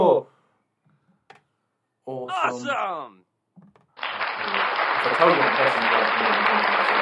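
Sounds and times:
speech: 0:02.5 - 0:03.2, 0:04.4 - 0:07.0
soundboard applause effect: 0:03.9 - 0:07.0.

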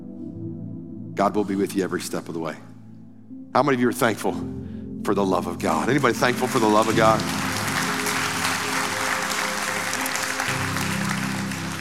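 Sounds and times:
low sustained tone from an organ or keyboard: 0:00.0 - 0:11.8
speech: 0:01.2 - 0:02.7, 0:03.5 - 0:07.4
audience applause: 0:06.2 - 0:11.8.

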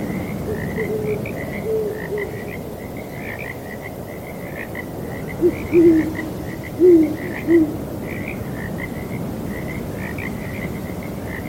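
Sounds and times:
frogs trilling in a breezy night: 0:00.0 - 0:11.4
owl giving low hoots: 0:00.5 - 0:02.5, 0:05.4 - 0:07.8.

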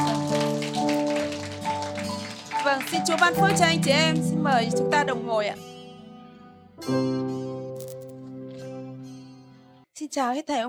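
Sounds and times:
audience applause: 0:00.0 - 0:04.2
speech: 0:02.8 - 0:05.7, 0:06.8 - 0:07.3, 0:10.0 - 0:10.6.

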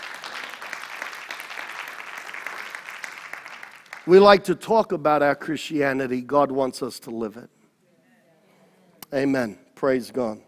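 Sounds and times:
audience applause: 0:00.0 - 0:04.2
speech: 0:04.1 - 0:07.6, 0:09.1 - 0:10.4.

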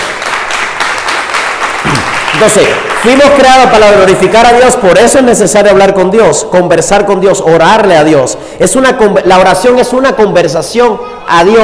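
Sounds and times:
audience applause: 0:00.0 - 0:04.4
speech: 0:02.4 - 0:11.6.

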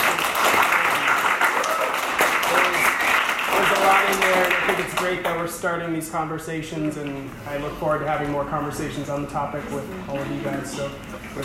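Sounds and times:
audience applause: 0:00.0 - 0:05.4
speech: 0:05.1 - 0:11.4.

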